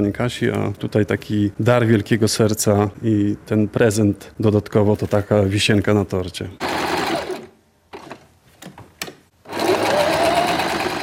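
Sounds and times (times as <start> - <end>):
speech: 0.0 - 7.1
sewing machine stitching: 6.6 - 8.2, 9.4 - 11.0.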